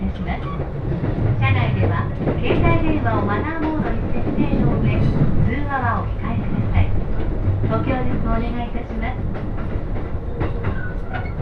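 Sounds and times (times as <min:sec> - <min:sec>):
train running on rails: 0:00.0 - 0:11.4.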